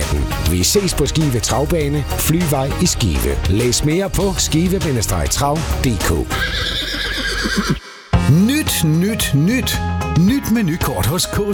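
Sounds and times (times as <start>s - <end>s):
speech: 0.5s - 11.5s
harness racing horse at Skive Travbane whinnying: 6.3s - 8.1s.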